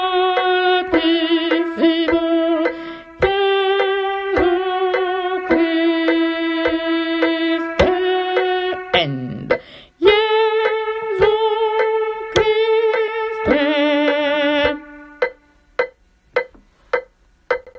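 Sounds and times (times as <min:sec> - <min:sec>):
mezzo-soprano singing: 0:00.0 - 0:15.5.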